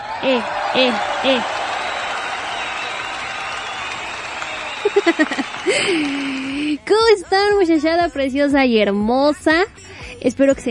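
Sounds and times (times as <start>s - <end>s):
applause: 0.0s - 6.8s
laughter: 0.0s - 6.8s
speech: 0.2s - 1.7s, 5.0s - 10.6s.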